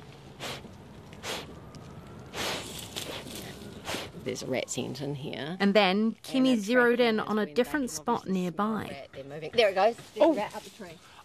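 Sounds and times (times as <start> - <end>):
dogs snorting to clear their noses while searching for rats: 0.4 - 1.6, 2.3 - 4.2
speech: 4.2 - 11.2.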